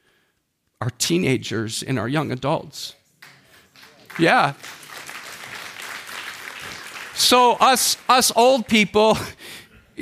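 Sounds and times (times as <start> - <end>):
speech: 0.8 - 3.0, 4.2 - 4.8, 7.2 - 10.0
audience applause: 3.2 - 9.2.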